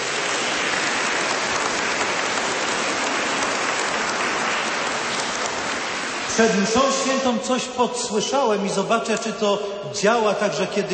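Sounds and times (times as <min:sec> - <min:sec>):
audience applause: 0:00.0 - 0:07.4
speech: 0:06.4 - 0:10.9.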